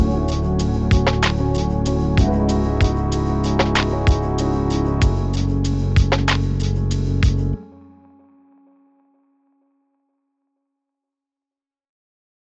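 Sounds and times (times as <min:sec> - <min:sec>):
lo-fi music: 0:00.0 - 0:09.0.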